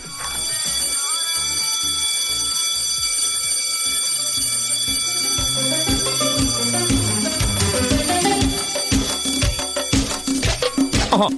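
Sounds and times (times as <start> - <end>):
school recess bell ringing: 0.0 - 11.0
rhythmic musical beat: 4.4 - 11.3.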